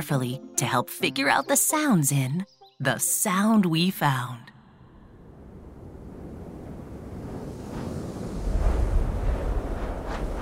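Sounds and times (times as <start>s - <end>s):
speech: 0.0s - 4.5s
winter storm at night: 4.9s - 10.4s.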